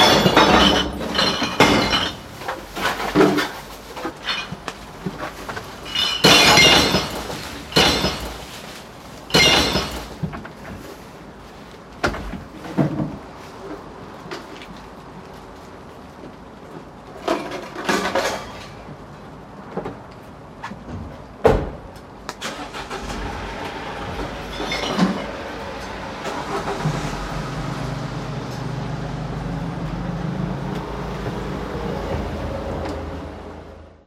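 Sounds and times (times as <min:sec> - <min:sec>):
bottles and plastic being picked up by recycling truck: 0:00.0 - 0:14.5, 0:17.1 - 0:18.9, 0:24.0 - 0:27.1
recycling truck: 0:00.0 - 0:34.0.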